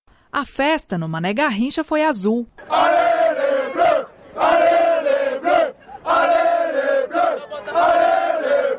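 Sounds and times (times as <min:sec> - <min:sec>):
speech: 0:00.4 - 0:02.9
French football fans chanting outside stadium: 0:02.6 - 0:08.7.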